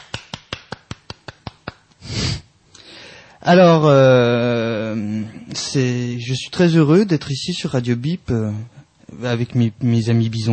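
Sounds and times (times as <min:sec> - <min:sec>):
one person clapping hands: 0:00.0 - 0:01.9
speech: 0:03.4 - 0:10.5.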